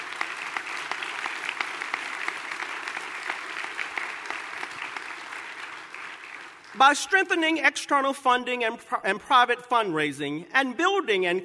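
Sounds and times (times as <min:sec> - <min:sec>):
audience applause: 0:00.0 - 0:06.8
speech: 0:06.8 - 0:11.4.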